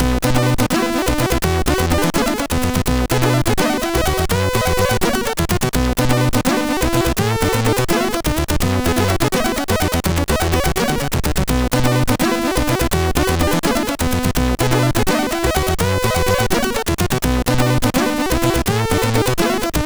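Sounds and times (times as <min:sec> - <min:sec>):
MOS6581R4 jazz: 0:00.0 - 0:19.8.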